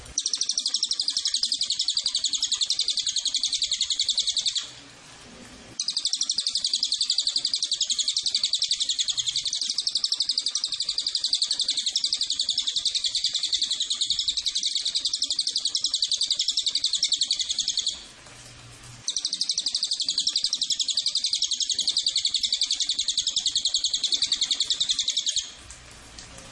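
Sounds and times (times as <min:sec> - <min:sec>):
cililin buzzy trill call: 0:00.2 - 0:04.8, 0:05.8 - 0:18.1, 0:19.0 - 0:25.6.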